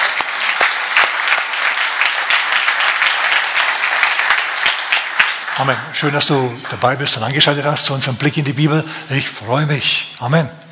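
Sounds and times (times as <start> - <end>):
audience clapping: 0.0 - 8.0
speech: 5.6 - 10.6.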